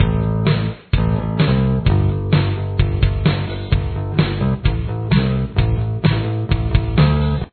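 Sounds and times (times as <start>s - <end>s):
bass: 0.0s - 7.5s.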